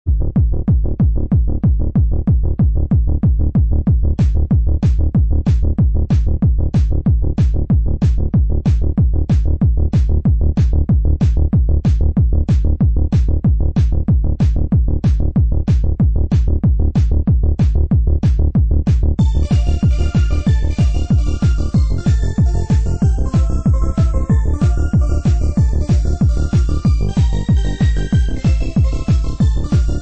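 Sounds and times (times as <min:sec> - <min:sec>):
techno music: 0:00.1 - 0:29.9.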